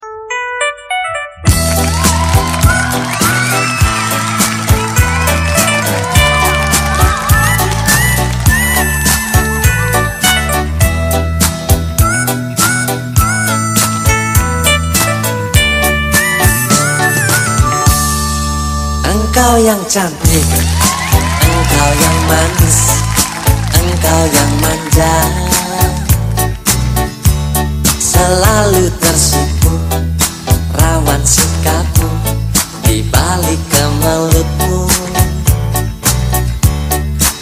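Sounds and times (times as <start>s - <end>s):
song: 0.0s - 37.4s.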